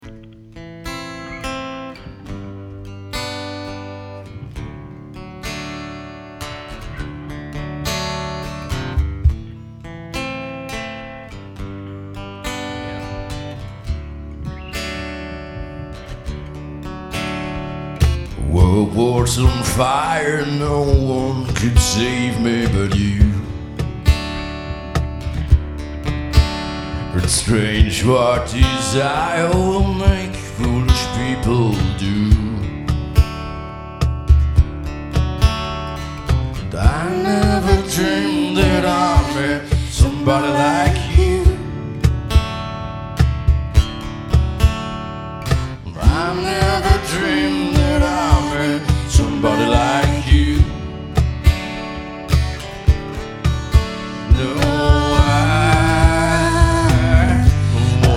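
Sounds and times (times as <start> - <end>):
acoustic music: 0.0 - 58.1.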